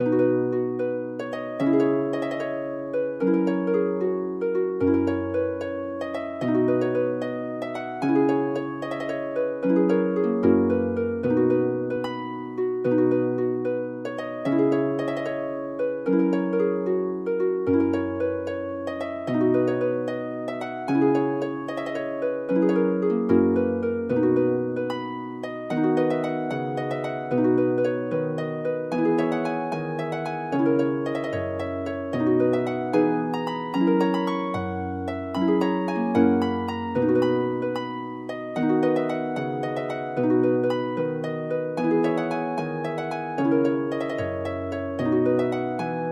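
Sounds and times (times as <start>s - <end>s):
harp: 0.0s - 46.1s.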